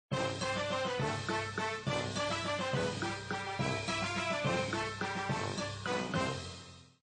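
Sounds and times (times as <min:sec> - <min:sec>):
music: 0:00.1 - 0:07.0.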